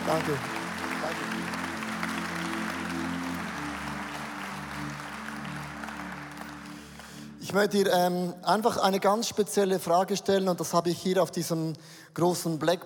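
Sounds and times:
audience applause: 0:00.0 - 0:07.5
speech: 0:00.1 - 0:01.6, 0:07.5 - 0:12.8.

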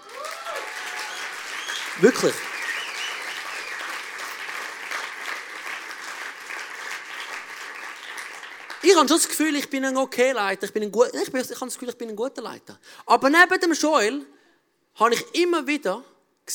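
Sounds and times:
audience applause: 0:00.0 - 0:09.1
speech: 0:02.0 - 0:02.5, 0:08.9 - 0:14.4, 0:15.0 - 0:16.5.

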